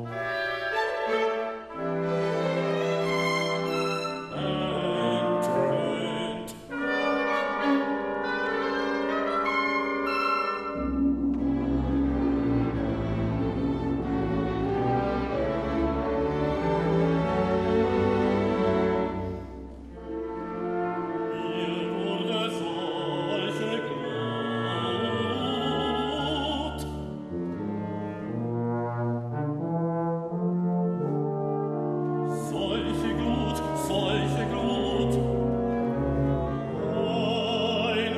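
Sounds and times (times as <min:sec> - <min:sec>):
large orchestra playing: 0:00.0 - 0:38.1
baritone singing: 0:04.2 - 0:07.3, 0:20.5 - 0:27.2, 0:32.2 - 0:38.1.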